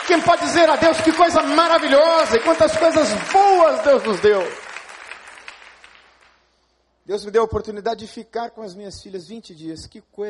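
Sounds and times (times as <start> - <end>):
crowd applause: 0.0 - 6.3
speech: 0.1 - 4.6, 7.1 - 10.2.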